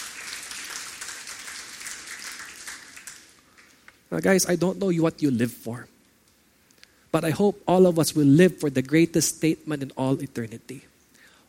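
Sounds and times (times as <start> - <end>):
audience clapping: 0.0 - 4.4
speech: 4.1 - 5.9, 7.1 - 10.9.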